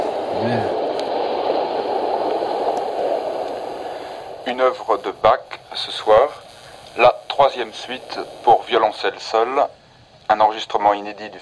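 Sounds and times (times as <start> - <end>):
sea waves in a radio show's theme: 0.0 - 9.7
speech: 0.4 - 0.8, 4.6 - 6.4, 7.0 - 11.4.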